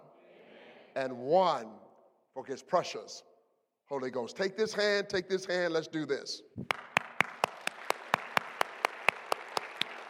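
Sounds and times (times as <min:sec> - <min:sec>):
speech: 0:01.0 - 0:01.8, 0:02.4 - 0:03.3, 0:03.9 - 0:06.8
audience applause: 0:06.7 - 0:10.0.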